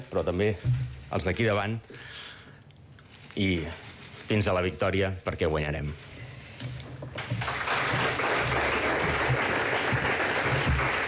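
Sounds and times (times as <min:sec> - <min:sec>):
speech: 0:00.1 - 0:02.2, 0:03.4 - 0:06.8
audience applause: 0:07.4 - 0:11.0.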